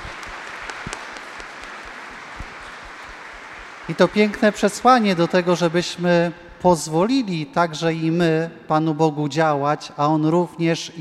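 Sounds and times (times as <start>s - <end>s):
applause: 0.0s - 5.9s
speech: 3.9s - 11.0s.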